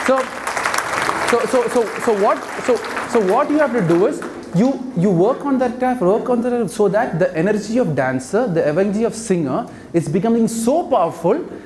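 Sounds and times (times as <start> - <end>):
audience clapping: 0.0 - 4.8
speech: 0.1 - 0.4, 1.0 - 11.6.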